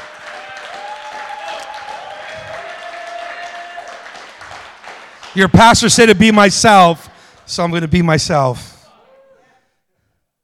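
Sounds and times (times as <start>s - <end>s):
audience clapping: 0.0s - 7.5s
speech: 5.3s - 8.7s.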